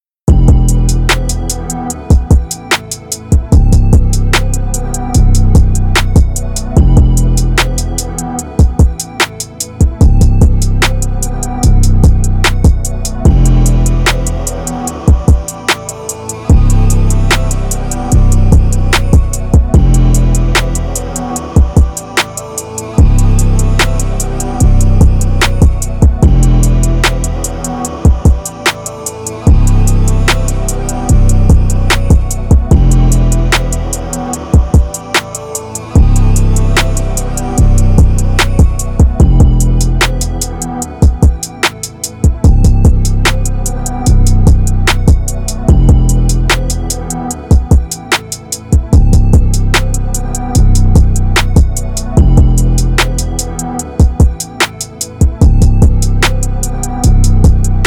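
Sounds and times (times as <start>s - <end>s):
music beat: 0.3s - 57.8s.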